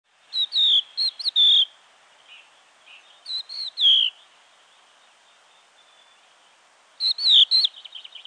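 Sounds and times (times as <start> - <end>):
crested lark calling: 0.3 - 4.3, 7.0 - 8.2.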